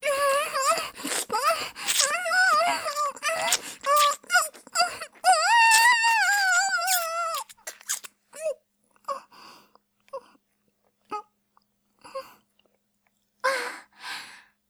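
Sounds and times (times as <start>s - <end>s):
swallowing: 0.1s - 8.1s.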